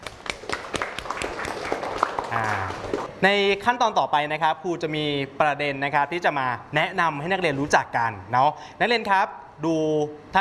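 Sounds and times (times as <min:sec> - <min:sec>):
classroom applause for a student: 0:00.0 - 0:03.1
speech: 0:02.3 - 0:10.3.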